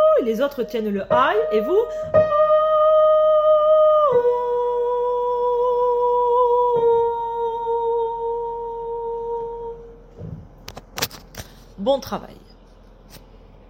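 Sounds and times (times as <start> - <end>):
soprano singing: 0.0 - 10.1.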